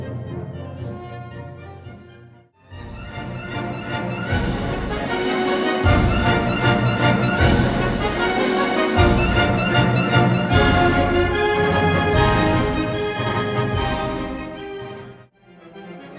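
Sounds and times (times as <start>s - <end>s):
concert band playing an overture: 3.2s - 15.1s.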